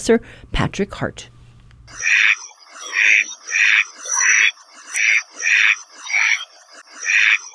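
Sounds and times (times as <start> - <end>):
speech: 0.0 - 1.3, 1.9 - 2.4
Hawaiian duck quacking: 2.0 - 6.4, 7.0 - 7.5.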